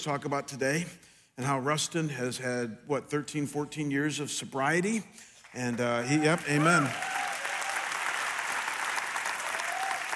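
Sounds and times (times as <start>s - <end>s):
speech: 0.0s - 7.2s
audience clapping: 5.4s - 10.1s.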